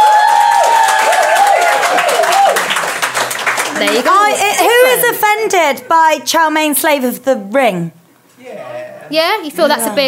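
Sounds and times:
audience clapping: 0.0 - 4.8
speech: 3.8 - 8.0, 9.1 - 10.0.

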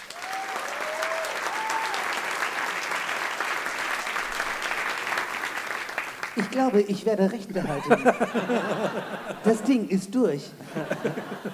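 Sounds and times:
audience whistles and whoops at a live comedy show: 0.0 - 2.2
audience applause for two comedy finalists at a live comedy show: 0.0 - 9.5
speech: 6.4 - 11.5
laughter: 7.5 - 9.9, 10.6 - 11.5.

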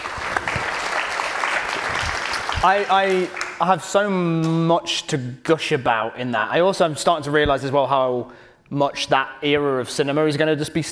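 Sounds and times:
applause: 0.0 - 3.8
speech: 2.6 - 10.9.

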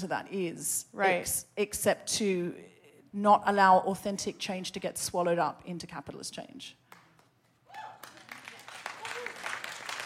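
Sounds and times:
speech: 0.0 - 6.9
audience applause: 7.8 - 10.0.

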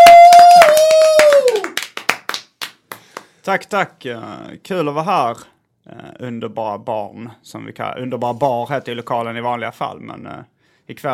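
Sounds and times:
audience applause: 0.0 - 3.2
speech: 3.5 - 11.1.

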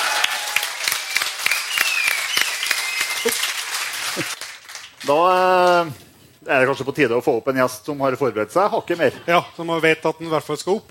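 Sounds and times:
audience applause: 0.0 - 5.4
speech: 5.1 - 10.8.

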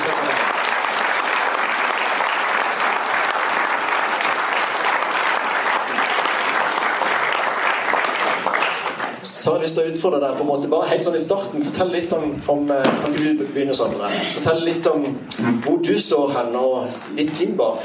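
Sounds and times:
audience applause: 0.0 - 9.2
speech: 9.5 - 17.8.

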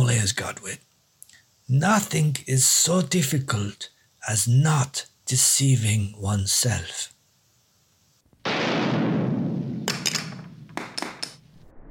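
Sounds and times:
speech: 0.2 - 0.9, 1.7 - 7.1
shotgun blast through a wooden door: 8.4 - 10.7.

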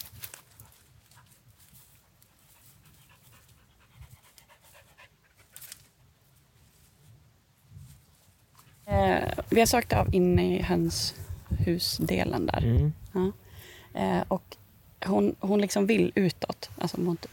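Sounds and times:
soft rustling: 0.0 - 13.8, 15.7 - 17.3
search dog panting: 2.3 - 5.5
speech: 9.0 - 13.4, 14.0 - 17.3.

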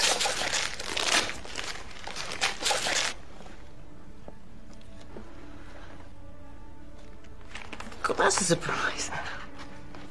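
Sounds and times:
wrapping paper being torn open on a wrapped CD gift: 0.0 - 3.2
speech: 8.3 - 9.4.

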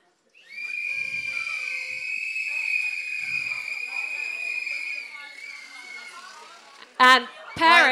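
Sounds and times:
party horns blowing: 0.4 - 6.6
speech: 7.0 - 7.8.

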